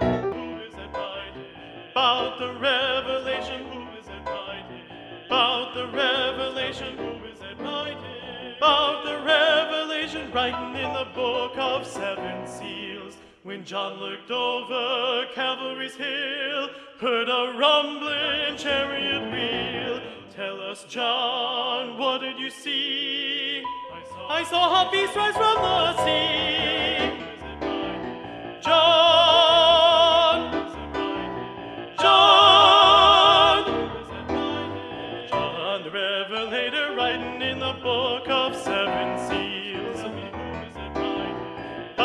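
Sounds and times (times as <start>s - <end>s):
choir singing: 0.2s - 16.2s, 17.4s - 42.0s.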